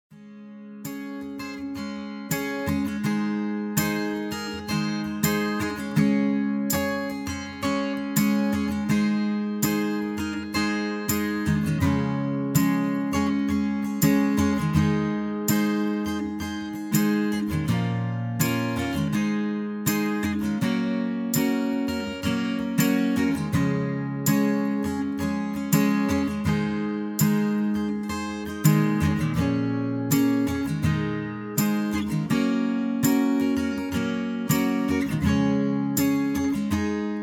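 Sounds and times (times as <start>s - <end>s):
guitar percussion: 0.1s - 37.2s.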